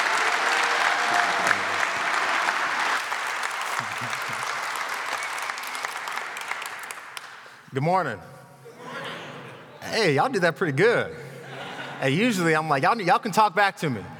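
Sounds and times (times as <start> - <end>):
audience applause welcoming a pastor at a church service: 0.0 - 7.5
laughter: 3.6 - 4.8, 11.2 - 12.5
speech: 7.8 - 8.4, 9.9 - 11.3, 12.0 - 14.1.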